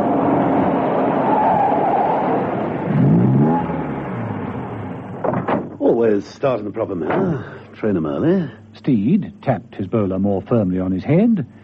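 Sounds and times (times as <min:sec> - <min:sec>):
Rolls-Royce car engine rumbling as it drives in: 0:00.0 - 0:09.2
speech: 0:06.0 - 0:11.6.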